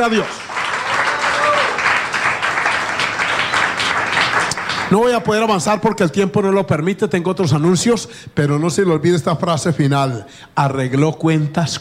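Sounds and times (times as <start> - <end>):
speech: 0.0 - 0.4, 4.9 - 11.7
audience applause: 0.0 - 5.0.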